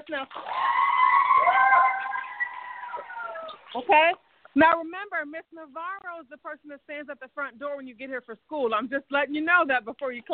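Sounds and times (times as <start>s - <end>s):
speech: 0.1s - 0.6s, 3.7s - 10.3s
group of school children cheering: 0.4s - 3.7s.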